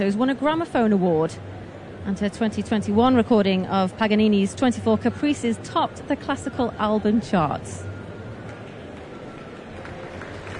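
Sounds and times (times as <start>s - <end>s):
speech: 0.0s - 7.9s
concert audience applause: 8.5s - 10.5s.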